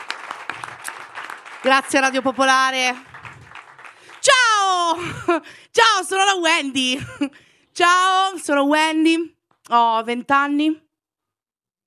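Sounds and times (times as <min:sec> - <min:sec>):
audience applauding: 0:00.0 - 0:05.0
speech: 0:01.6 - 0:03.1, 0:04.2 - 0:10.8.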